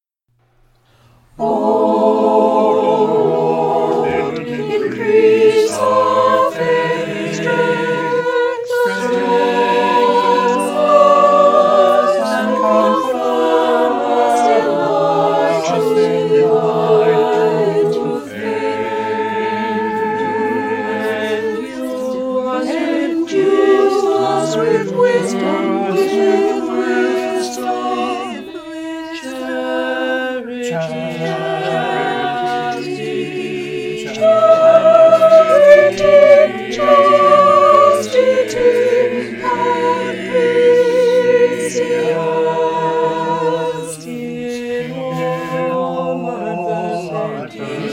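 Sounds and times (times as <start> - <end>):
virtual choir: 0.0 - 47.9.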